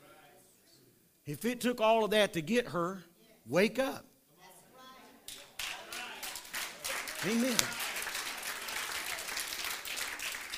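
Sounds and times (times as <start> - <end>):
speech: 1.3 - 4.1, 7.2 - 7.8
light scattered applause from a small crowd: 5.3 - 10.5.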